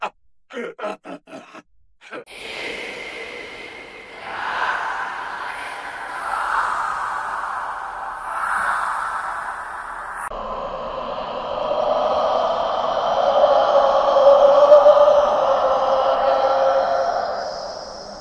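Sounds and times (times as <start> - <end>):
scary horror sound effects: 2.3 - 18.1.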